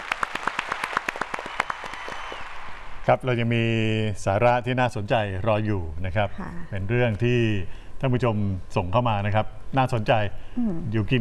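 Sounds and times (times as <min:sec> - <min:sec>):
applause sound effect: 0:00.0 - 0:02.9
speech: 0:03.1 - 0:11.1.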